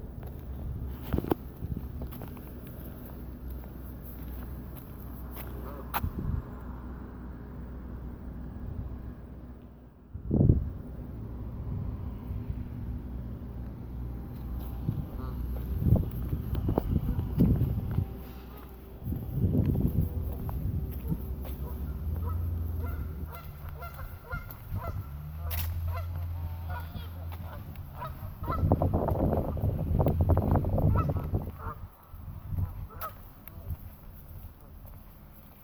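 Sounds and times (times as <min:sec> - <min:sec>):
low wind noise: 0:00.0 - 0:02.5, 0:05.9 - 0:06.6, 0:10.1 - 0:13.4, 0:14.0 - 0:34.6
geese honking: 0:15.1 - 0:15.6, 0:21.0 - 0:28.9, 0:30.8 - 0:32.0, 0:32.9 - 0:33.2.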